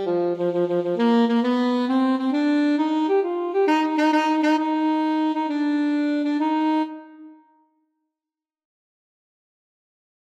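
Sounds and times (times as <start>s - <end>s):
alto saxophone duet: 0.0s - 7.6s.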